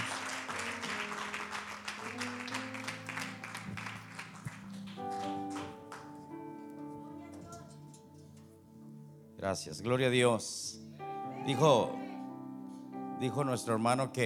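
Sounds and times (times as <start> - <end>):
audience applause: 0.0 - 6.2
speech: 9.4 - 10.8, 11.4 - 12.0, 13.2 - 14.2.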